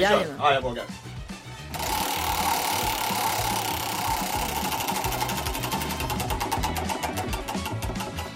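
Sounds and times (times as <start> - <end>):
speech: 0.0 - 1.1
prize wheel spinning in a Swedish humor-archive game: 1.8 - 8.3.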